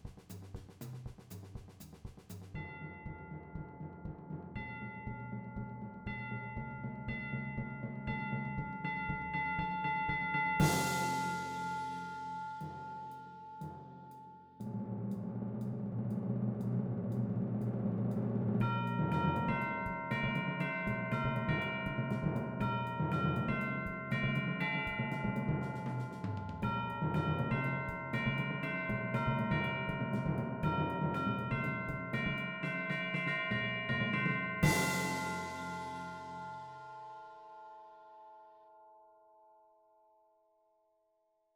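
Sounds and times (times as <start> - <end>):
drum set in a percussion ensemble: 0.0 - 36.9
chimes in a percussion ensemble: 2.6 - 14.7, 18.6 - 40.6
timpani in a percussion ensemble: 10.6 - 33.2, 34.2 - 36.9.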